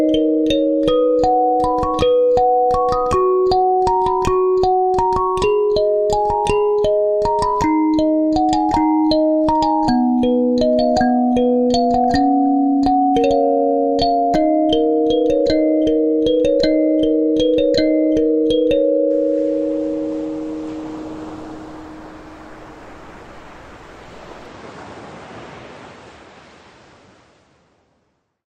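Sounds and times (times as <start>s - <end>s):
kalimba melody: 0.0s - 22.8s.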